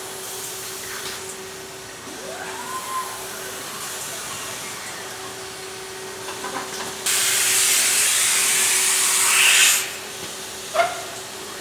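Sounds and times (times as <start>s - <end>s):
giant blender running in a bottling plant factory: 1.4s - 11.5s.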